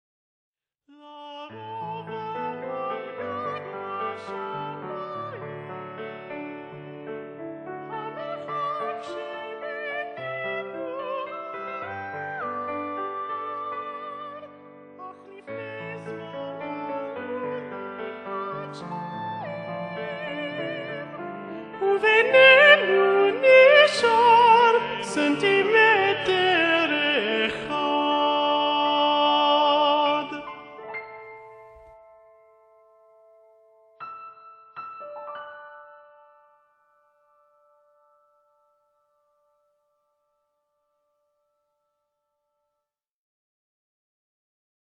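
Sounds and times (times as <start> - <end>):
alto voice singing Hebrew love songs: 0.9 - 31.9.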